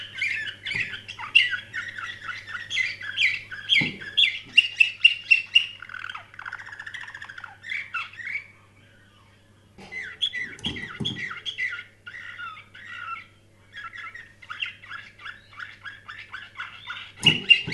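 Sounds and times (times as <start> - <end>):
canary singing trills: 0.0 - 17.7.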